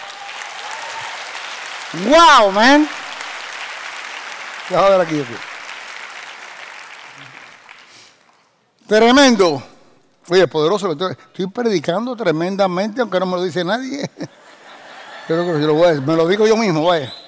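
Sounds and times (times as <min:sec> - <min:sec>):
audience applause: 0:00.0 - 0:08.4
speech: 0:01.9 - 0:03.0, 0:04.7 - 0:05.5, 0:08.9 - 0:09.7, 0:10.3 - 0:14.3, 0:15.3 - 0:17.2
laughter: 0:13.7 - 0:16.8.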